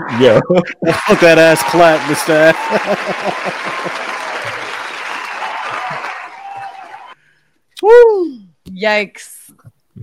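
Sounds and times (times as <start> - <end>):
speech: 0.0 - 4.6, 8.8 - 10.0
laughter: 0.1 - 6.3
crowd applause sound effect: 0.9 - 7.2.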